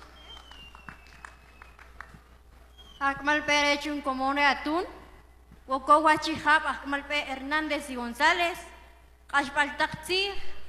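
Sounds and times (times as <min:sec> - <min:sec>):
audience applause: 0:00.0 - 0:02.4
speech: 0:03.0 - 0:05.0, 0:05.7 - 0:08.7, 0:09.3 - 0:10.5.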